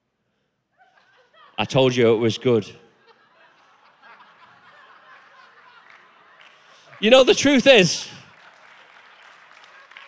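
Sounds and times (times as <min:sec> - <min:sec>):
laughter: 0:00.8 - 0:02.1, 0:02.9 - 0:08.2
speech: 0:01.6 - 0:02.8, 0:07.0 - 0:08.2
audience applause: 0:05.1 - 0:10.0.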